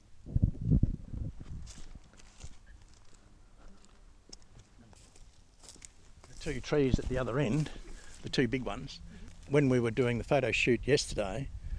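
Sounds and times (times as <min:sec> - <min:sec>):
footsteps of people walking through a bushland park: 0:01.4 - 0:10.0
speech: 0:06.4 - 0:11.6.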